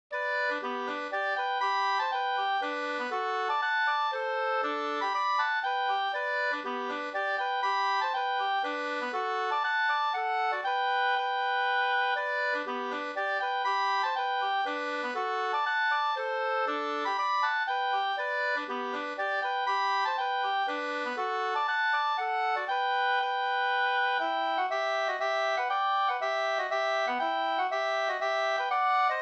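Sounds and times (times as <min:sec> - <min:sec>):
folk dance polska music: 0:00.2 - 0:29.2.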